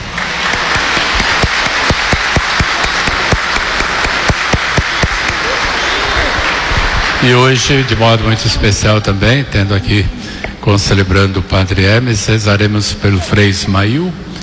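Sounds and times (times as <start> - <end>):
audience applause: 0.0 - 9.1
speech: 7.2 - 14.3.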